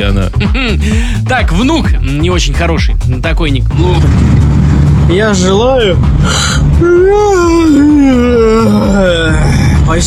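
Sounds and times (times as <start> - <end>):
speech: 0.1 - 10.0
person yawning: 6.2 - 9.8.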